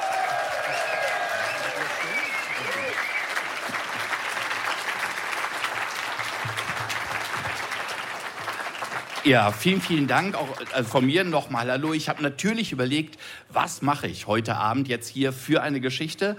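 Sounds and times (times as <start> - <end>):
faint voices and whoops: 0.0 - 3.3
audience applause: 0.0 - 12.0
speech: 9.2 - 16.3.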